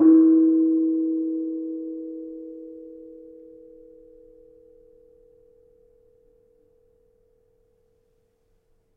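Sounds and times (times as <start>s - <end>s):
kenong gong of a gamelan: 0.0s - 7.6s.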